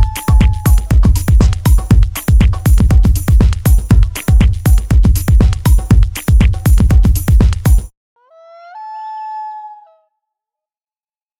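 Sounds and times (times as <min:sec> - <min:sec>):
techno loop: 0:00.0 - 0:07.9.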